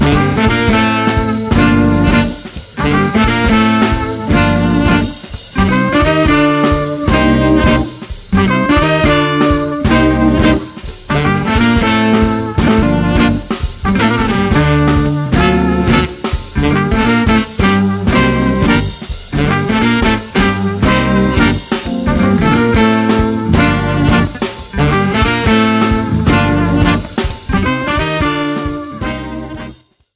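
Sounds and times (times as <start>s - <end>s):
funk music: 0.0s - 29.8s.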